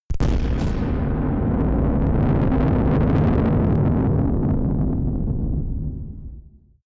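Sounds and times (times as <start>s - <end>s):
distorted explosions: 0.1s - 6.8s.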